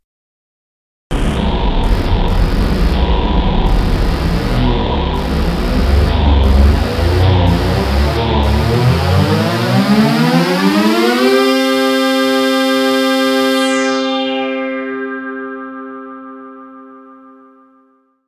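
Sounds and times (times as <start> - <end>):
Moog Modular synthesizer: 1.2 - 15.2.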